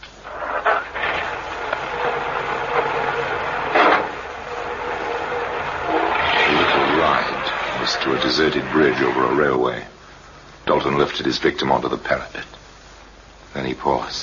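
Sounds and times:
car engine running during drive: 0:01.0 - 0:08.8
speech: 0:08.4 - 0:09.9, 0:10.8 - 0:12.6, 0:13.6 - 0:14.2.

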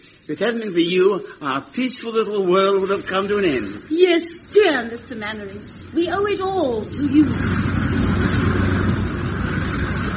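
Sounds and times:
speech: 0:00.3 - 0:08.0
aeroplane taking off: 0:06.8 - 0:10.1.

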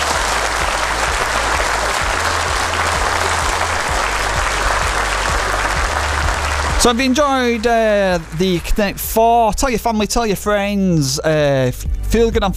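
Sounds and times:
applause: 0:00.0 - 0:09.2
speech: 0:06.8 - 0:12.5.

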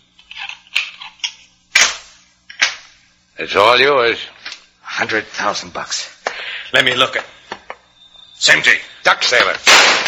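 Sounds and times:
pistol shot fired from a pocket: 0:01.7 - 0:02.8, 0:09.6 - 0:10.0
speech: 0:03.4 - 0:04.4, 0:05.0 - 0:06.1, 0:06.7 - 0:07.4, 0:08.4 - 0:10.0.

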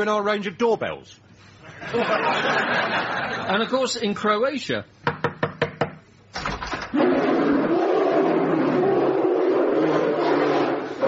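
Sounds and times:
speech: 0:00.0 - 0:05.2
laughter: 0:01.6 - 0:03.7
enormous brown bear roar sound effect: 0:06.9 - 0:11.0.

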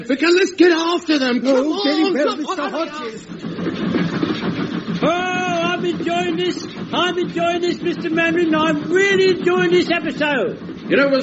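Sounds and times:
speech: 0:00.0 - 0:04.0, 0:05.0 - 0:11.2
train running on rails: 0:00.7 - 0:11.2
laughter: 0:01.3 - 0:03.4.

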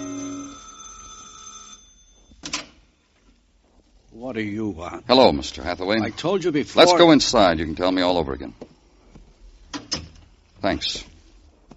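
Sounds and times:
electric doorbell ringing: 0:00.0 - 0:02.3
speech: 0:04.2 - 0:08.7, 0:10.7 - 0:11.1.

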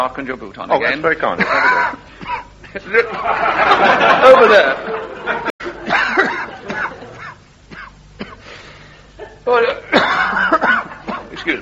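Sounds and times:
speech: 0:00.0 - 0:05.5, 0:09.5 - 0:09.8
laughter: 0:01.3 - 0:07.4
man coughing: 0:01.4 - 0:02.9, 0:05.8 - 0:08.5, 0:09.2 - 0:11.5.

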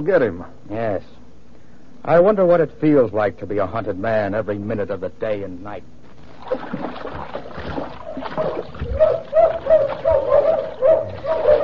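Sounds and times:
speech: 0:00.0 - 0:01.2, 0:02.0 - 0:11.5
river water splashing: 0:06.2 - 0:11.6
bloodhounds baying and barking while chasing: 0:08.0 - 0:11.6.

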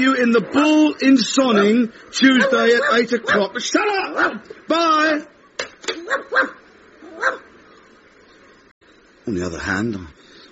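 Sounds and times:
speech: 0:00.0 - 0:05.4, 0:06.1 - 0:06.6, 0:09.3 - 0:10.2
dog barking: 0:01.4 - 0:04.4, 0:06.0 - 0:07.5.

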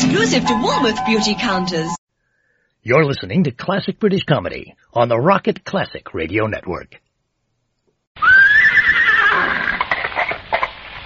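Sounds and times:
speech: 0:00.1 - 0:02.0, 0:02.8 - 0:07.0
horse neighing beside a pony and trap: 0:08.2 - 0:10.3.

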